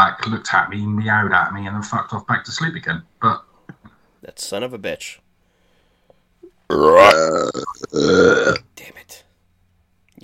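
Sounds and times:
speech: 0:00.1 - 0:05.2, 0:06.7 - 0:09.2
loud burp into the microphone: 0:06.7 - 0:08.7.

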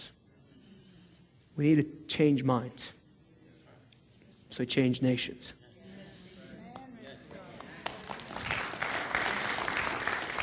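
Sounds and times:
speech: 0:01.6 - 0:03.0, 0:04.5 - 0:05.6
audience clapping: 0:06.7 - 0:10.4.

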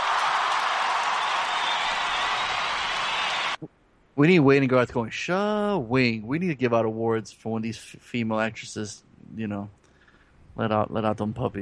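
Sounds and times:
audience applause: 0:00.0 - 0:03.6
speech: 0:04.2 - 0:09.8, 0:10.6 - 0:11.6.

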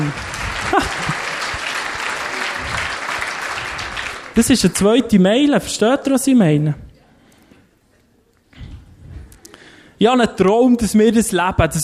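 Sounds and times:
audience applause: 0:00.0 - 0:04.5
laughter: 0:00.5 - 0:02.8
speech: 0:04.4 - 0:06.8, 0:10.0 - 0:11.8.

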